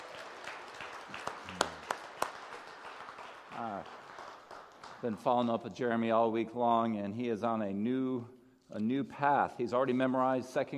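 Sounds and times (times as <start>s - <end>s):
audience clapping: 0.0s - 5.9s
speech: 3.6s - 4.0s, 5.0s - 10.7s.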